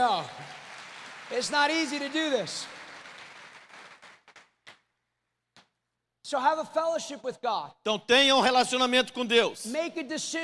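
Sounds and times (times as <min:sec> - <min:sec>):
audience applause: 0:00.0 - 0:04.5
speech: 0:01.3 - 0:02.8, 0:06.3 - 0:10.4.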